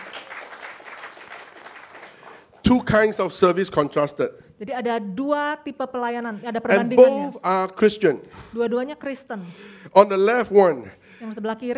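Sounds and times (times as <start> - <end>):
audience clapping: 0.0 - 3.2
speech: 2.7 - 11.7.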